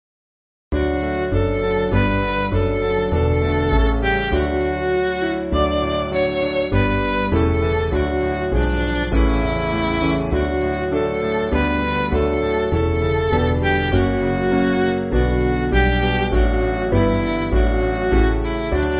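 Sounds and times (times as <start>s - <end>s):
MIDI church backing music: 0.8s - 18.9s.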